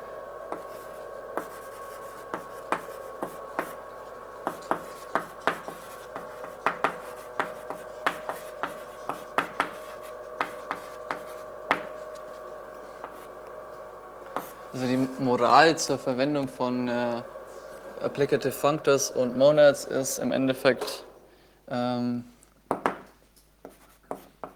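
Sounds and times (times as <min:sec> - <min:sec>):
low hum: 0:00.0 - 0:22.3
writing by hand: 0:00.5 - 0:13.4, 0:14.3 - 0:14.7, 0:22.8 - 0:24.5
speech: 0:14.8 - 0:17.4, 0:18.0 - 0:21.1, 0:21.7 - 0:22.3.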